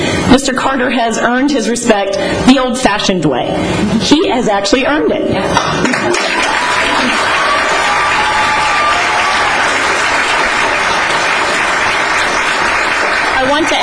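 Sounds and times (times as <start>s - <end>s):
speech: 0.3s - 7.2s, 13.5s - 13.8s
crowd cheering: 5.8s - 13.8s
large audience applause: 5.8s - 13.8s.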